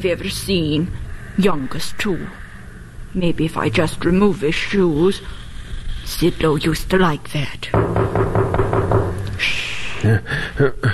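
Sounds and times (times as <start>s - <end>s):
speech: 0.0s - 2.4s, 3.1s - 5.4s, 6.1s - 8.4s, 9.4s - 10.9s
knocking on a door: 7.7s - 9.4s.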